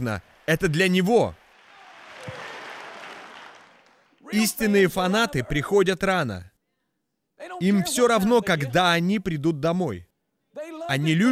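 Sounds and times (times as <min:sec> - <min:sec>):
speech: 0:00.0 - 0:01.4, 0:04.3 - 0:06.5, 0:07.4 - 0:10.1, 0:10.9 - 0:11.3
congregation hand clapping during a church worship service: 0:00.0 - 0:05.0.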